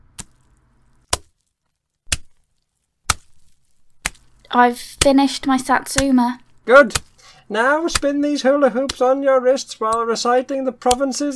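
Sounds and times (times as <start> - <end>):
smoked haddock slapped against thighs: 0.2 - 1.4, 2.0 - 4.4, 5.9 - 7.2
speech: 4.5 - 11.3.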